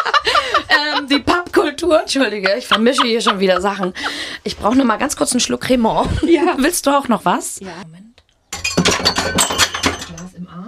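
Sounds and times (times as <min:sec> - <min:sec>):
laughter: 0:00.0 - 0:04.8
speech: 0:01.8 - 0:08.2, 0:09.0 - 0:09.7
drinking glass breaking: 0:08.5 - 0:10.3.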